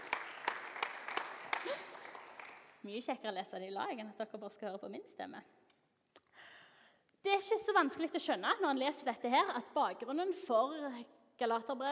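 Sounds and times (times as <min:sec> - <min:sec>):
audience clapping: 0:00.0 - 0:02.8
speech: 0:02.8 - 0:05.6, 0:07.3 - 0:11.9.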